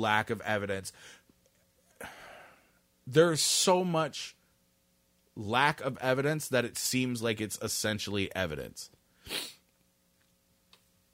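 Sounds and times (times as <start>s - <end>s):
speech: 0.0s - 1.2s, 3.1s - 4.4s, 5.4s - 9.6s
person sniffing: 9.2s - 9.7s.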